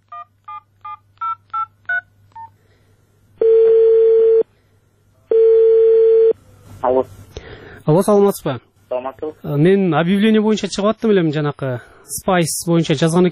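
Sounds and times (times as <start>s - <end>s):
long loud telephone ringing tones: 3.4s - 4.4s, 5.3s - 6.4s
speech: 6.9s - 7.2s, 7.9s - 13.3s.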